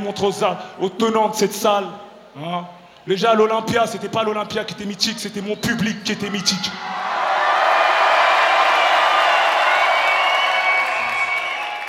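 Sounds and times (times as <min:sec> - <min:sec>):
speech: 0:00.0 - 0:07.0
audience cheering at the Zénith concert hall: 0:06.2 - 0:11.8
audience applauding at the Zénith concert hall: 0:07.7 - 0:11.8.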